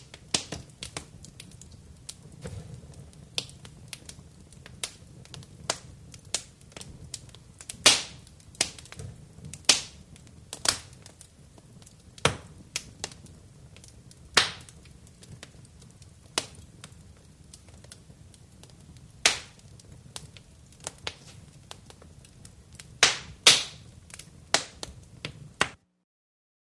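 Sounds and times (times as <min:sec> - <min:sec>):
poking fireplace fire with poker outdoors: 0:00.0 - 0:25.8.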